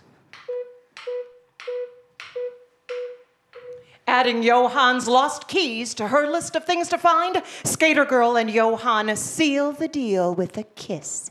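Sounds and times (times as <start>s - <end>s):
metronome ticking: 0.0s - 4.0s
speech: 4.1s - 11.2s.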